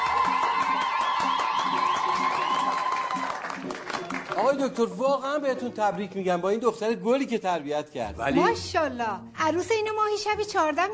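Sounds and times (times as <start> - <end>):
applause for the bride: 0.0 - 5.0
speech: 4.5 - 10.9.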